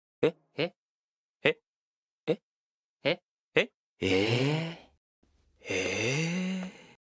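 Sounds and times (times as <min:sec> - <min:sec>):
person vocalizing: 0:00.2 - 0:00.8, 0:03.0 - 0:04.9, 0:05.6 - 0:06.9.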